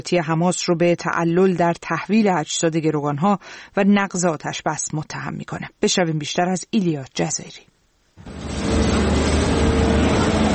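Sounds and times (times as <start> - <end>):
speech: 0.0 - 9.1
loader diesel engines rumbling in search operation: 8.2 - 10.5.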